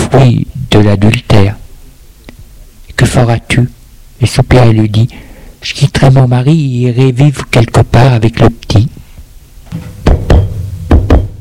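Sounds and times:
speech: 0:00.2 - 0:01.6, 0:03.2 - 0:09.0
knocking on a door: 0:10.0 - 0:11.4.

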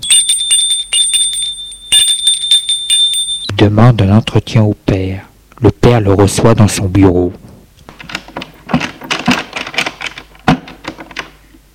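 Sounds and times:
doorbell ringing: 0:00.0 - 0:03.5
speech: 0:03.6 - 0:07.5.

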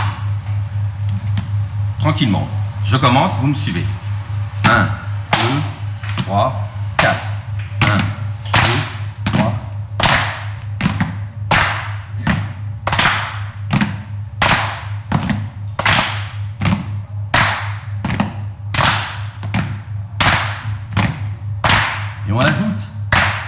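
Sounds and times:
rhythmic foot stomps: 0:00.0 - 0:01.6, 0:03.9 - 0:22.2
low constant hum: 0:00.0 - 0:23.4
speech: 0:02.0 - 0:04.0, 0:04.7 - 0:05.0, 0:06.3 - 0:06.7
sharp hand claps: 0:05.3 - 0:06.3, 0:07.0 - 0:22.2, 0:23.1 - 0:23.4.

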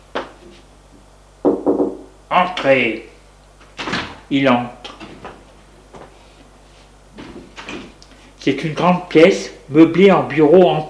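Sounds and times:
knocking on a door: 0:01.4 - 0:02.1
speech: 0:02.3 - 0:03.1, 0:04.3 - 0:04.9, 0:08.4 - 0:10.8.

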